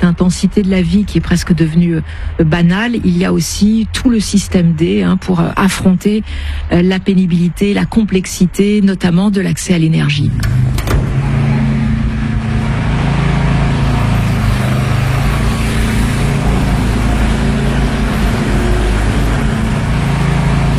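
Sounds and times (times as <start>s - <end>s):
diesel generator running in a street in Kyiv: 0.0s - 8.0s, 9.2s - 20.7s
speech: 0.0s - 10.6s.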